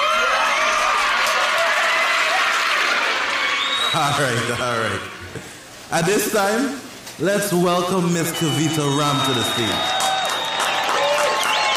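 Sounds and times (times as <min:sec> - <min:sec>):
audience cheering and applauding: 0:00.0 - 0:05.4, 0:08.2 - 0:11.7
speech: 0:03.9 - 0:10.0.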